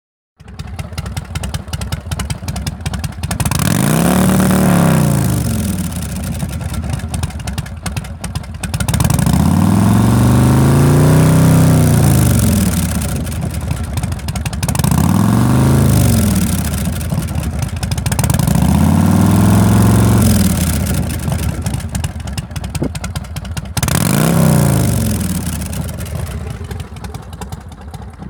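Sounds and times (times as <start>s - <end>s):
motorcycle exhaust with silencer insert: 0.4s - 28.2s.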